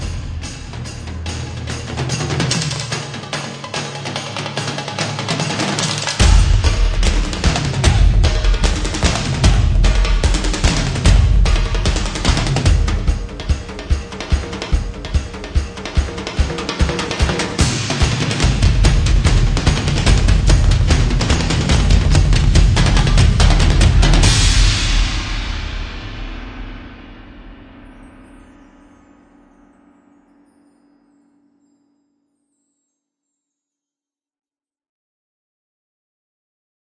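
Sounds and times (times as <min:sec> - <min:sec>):
drums: 0:00.0 - 0:28.7.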